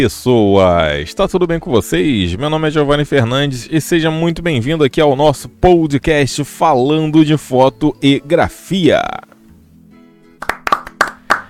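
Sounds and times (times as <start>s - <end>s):
speech: 0.0s - 9.3s
applause sound effect: 10.4s - 11.4s.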